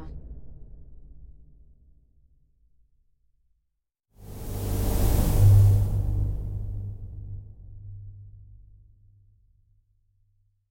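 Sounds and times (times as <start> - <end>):
space whooshes: 4.2 - 8.0.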